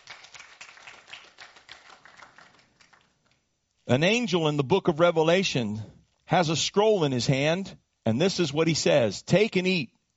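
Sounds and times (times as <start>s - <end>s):
audience clapping hands: 0.0s - 3.4s
speech: 3.9s - 10.0s.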